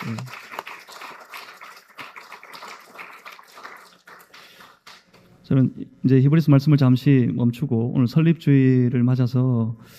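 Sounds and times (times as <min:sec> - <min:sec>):
audience applause: 0:00.0 - 0:05.1
speech: 0:05.5 - 0:09.9.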